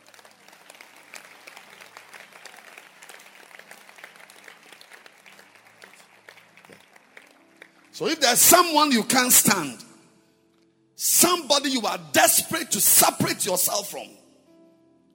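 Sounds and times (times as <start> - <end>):
audience hand clapping: 0.0 - 9.2
speech: 8.0 - 9.8, 11.7 - 14.3.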